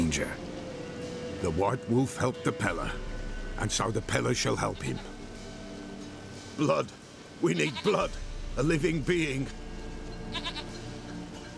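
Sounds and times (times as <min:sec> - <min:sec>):
speech: 0:00.2 - 0:00.5, 0:01.4 - 0:05.2, 0:06.6 - 0:09.6, 0:10.3 - 0:10.6
goat bleating: 0:07.5 - 0:08.1, 0:10.3 - 0:10.8.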